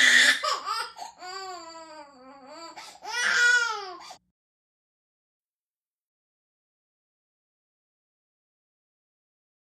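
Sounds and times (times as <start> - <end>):
twelve month old baby girl crying and screaming: 0.0 - 4.2.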